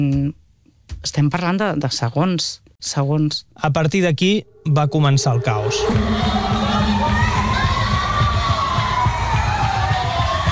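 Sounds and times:
speech: 0.0 - 6.8
people screaming: 4.4 - 10.5.

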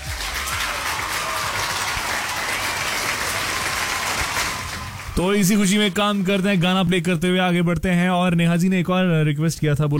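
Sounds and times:
applause: 0.0 - 6.6
speech: 5.2 - 9.9.

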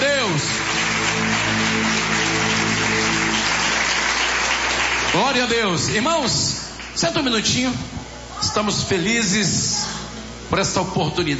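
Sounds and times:
many hands clapping together: 0.0 - 6.1
low sustained hum of tones: 0.0 - 6.7
speech: 5.2 - 9.9, 10.5 - 11.3.

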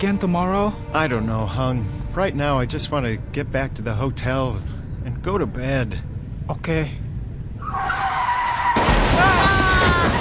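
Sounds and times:
speech: 0.0 - 7.0
motorcycle skidding and crashing into a car: 8.6 - 10.2.

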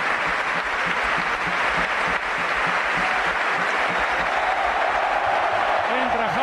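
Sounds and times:
San Mamés stadium crowd ovation for substituted player: 0.0 - 6.4.

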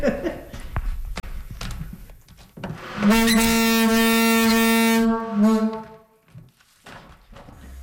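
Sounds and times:
laughter: 0.0 - 0.6
loud foghorn box sounding in St. Martin's: 2.8 - 6.1.

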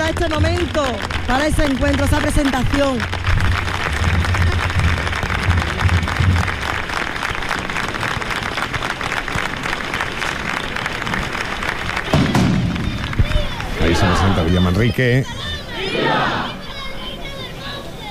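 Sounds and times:
low thuds and rumbles: 0.0 - 6.9
crowd of pilgrims clapping: 0.0 - 16.9
speech: 0.1 - 3.9, 13.9 - 16.6.

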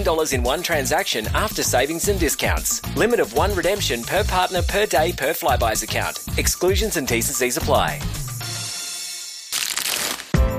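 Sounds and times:
speech: 0.0 - 8.2
foil wrapper of a Lindt Lindor chocolate truffle crinkling: 9.5 - 10.4.

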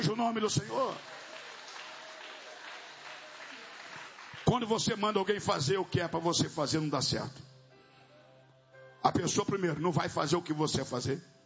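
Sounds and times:
speech: 0.0 - 1.2, 4.5 - 7.5, 9.0 - 11.3
congregation clapping during a church worship service: 0.0 - 6.2.

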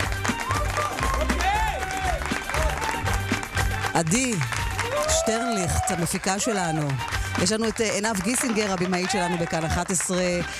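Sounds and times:
applause: 0.0 - 10.5
speech: 4.0 - 10.5.

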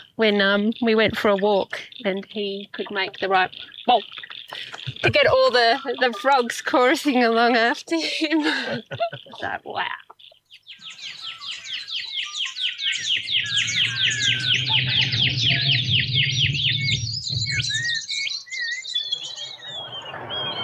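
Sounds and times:
pardalote chirps: 0.0 - 7.2, 8.7 - 20.6
speech: 0.2 - 10.1
laughter: 2.5 - 6.9, 7.9 - 9.7
cuckoo whistled pew pew call: 10.8 - 20.6
low steady rumble: 13.3 - 17.8.

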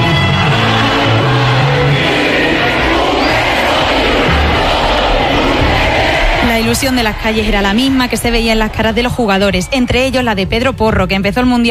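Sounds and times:
football crowd cheering and shouting at football screening: 0.0 - 10.2
speech: 6.7 - 11.6.

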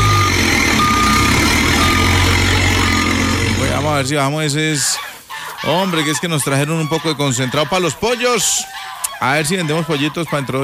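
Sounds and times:
truck reversing alarm beeps: 0.0 - 4.0
truck backing up with low engine rumble: 0.0 - 4.3
speech: 4.0 - 10.6.

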